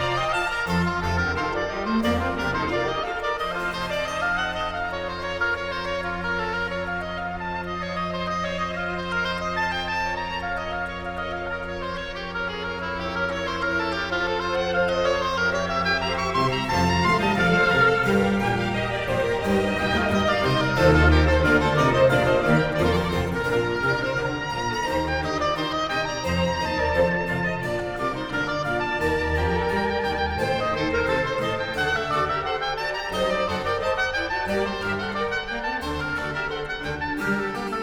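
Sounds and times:
oboe concerto music in D minor: 0.0 - 37.8.

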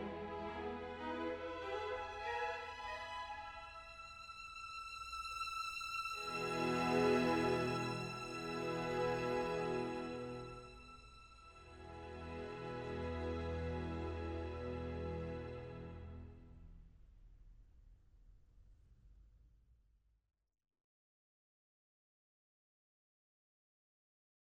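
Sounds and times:
serenade for strings in E minor: 0.0 - 16.3.

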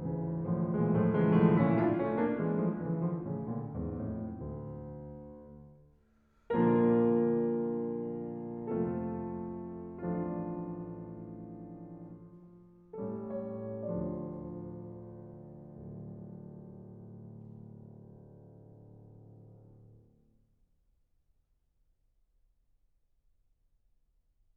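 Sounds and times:
piano prelude in D minor: 0.0 - 5.9, 6.5 - 20.0.

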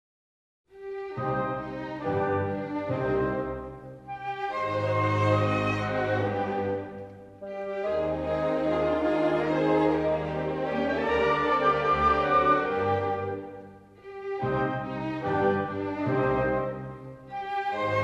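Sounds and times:
piano concerto in C minor: 0.8 - 18.0.

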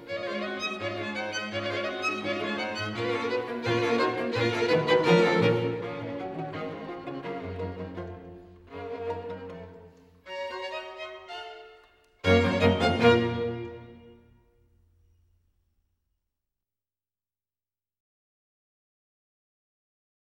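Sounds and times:
string quartet playing a presto in B-flat major: 0.0 - 14.4.

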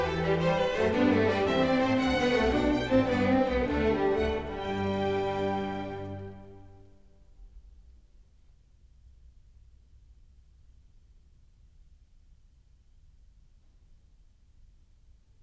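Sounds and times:
orchestral suite: 0.0 - 7.1.

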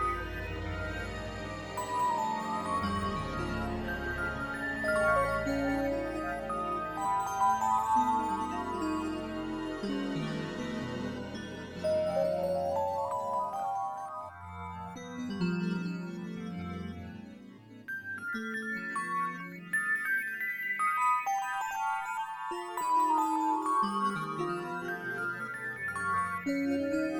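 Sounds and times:
harmonic minor music coda: 0.0 - 27.1.

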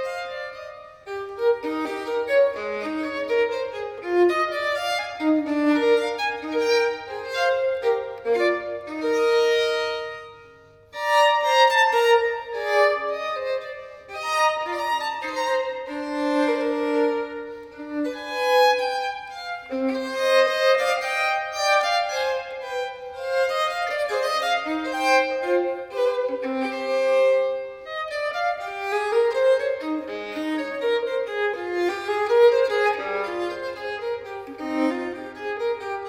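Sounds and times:
solo violin partita minuet: 0.0 - 36.0.

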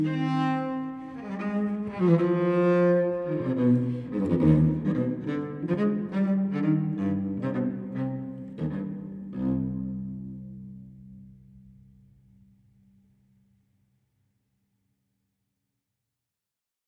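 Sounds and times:
solo cello gigue in C minor: 0.0 - 12.6.

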